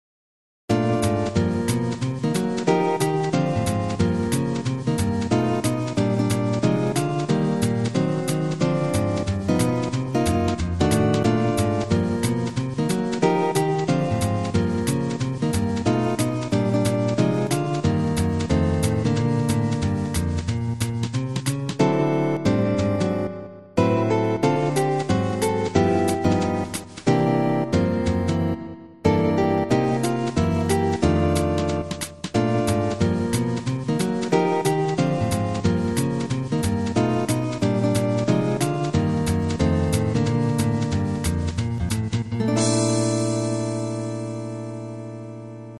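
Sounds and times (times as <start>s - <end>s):
jazz guitarist walking: 0.7s - 45.7s.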